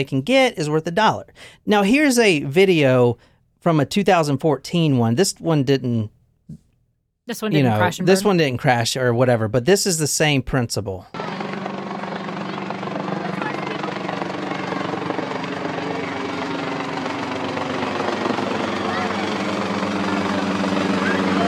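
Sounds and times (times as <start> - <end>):
speech: 0.0 - 6.6, 7.3 - 11.3
helicopter rotor and engine droning: 7.7 - 8.3, 11.1 - 21.4
faint murmur of voices: 12.0 - 21.4.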